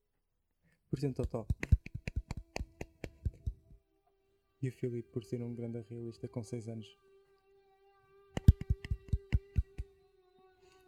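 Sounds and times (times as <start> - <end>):
speech: 0.9 - 1.7, 4.6 - 7.1
hand clapping: 1.1 - 3.7, 8.4 - 9.9.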